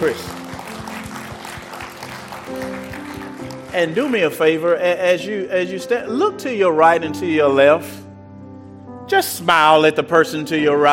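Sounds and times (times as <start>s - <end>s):
speech: 0.0s - 0.4s, 3.7s - 8.0s, 9.1s - 10.9s
crowd hand clapping: 0.0s - 4.6s
sustained organ-like chords: 0.0s - 10.9s.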